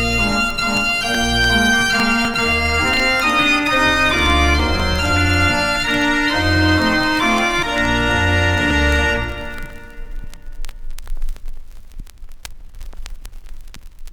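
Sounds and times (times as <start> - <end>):
Dutch street organ playing: 0.0 - 10.4.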